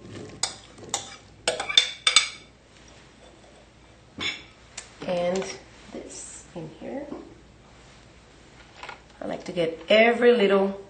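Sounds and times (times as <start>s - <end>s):
mixing pineapple mixture in a bowl: 0.0s - 2.4s
speech: 9.6s - 10.8s.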